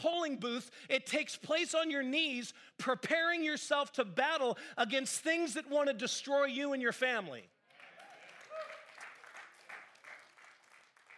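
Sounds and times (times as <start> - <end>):
speech: 0.0 - 7.5
sparse audience applause: 7.7 - 11.1.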